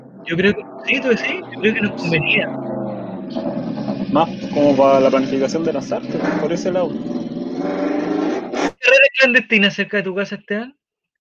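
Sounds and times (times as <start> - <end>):
motorcycle passing by: 0.0 - 8.7
speech: 0.3 - 7.9, 9.1 - 10.8.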